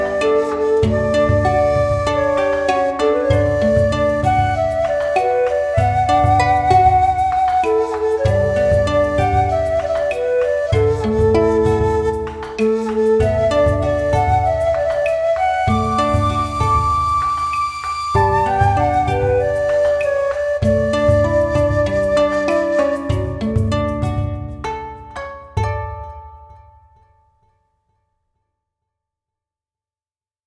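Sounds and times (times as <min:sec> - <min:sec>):
koto playing Japanese style music: 0:00.0 - 0:27.0.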